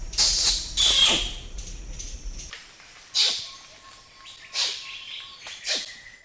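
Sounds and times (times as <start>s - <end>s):
orangutan kiss squeaks: 0.2s - 1.3s, 3.2s - 3.5s, 4.6s - 4.8s, 5.6s - 5.9s.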